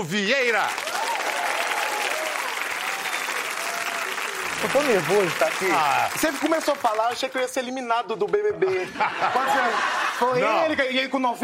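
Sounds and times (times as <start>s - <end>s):
speech: 0.0s - 1.0s, 4.6s - 11.4s
audience applause: 0.4s - 7.6s
laughter: 8.6s - 10.8s.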